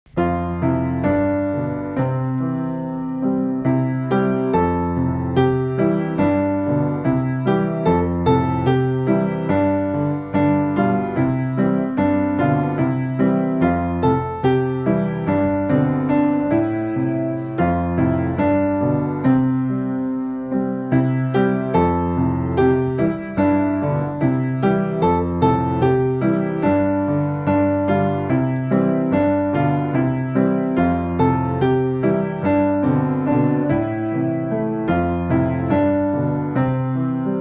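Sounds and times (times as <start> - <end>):
Easter piano: 0.0 - 37.3.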